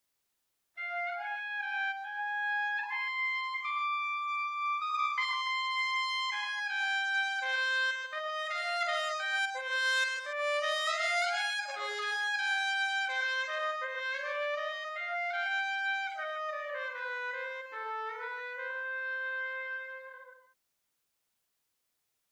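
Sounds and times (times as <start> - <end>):
trumpet: 0.8 - 20.6.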